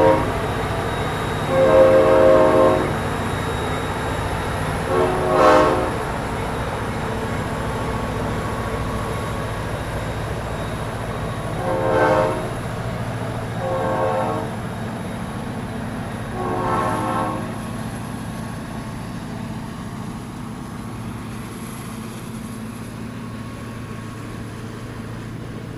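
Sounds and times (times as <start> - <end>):
train horn: 0.0 - 3.9, 4.7 - 6.4, 11.4 - 12.7, 13.5 - 14.7, 16.3 - 17.8
train idling: 0.0 - 25.7.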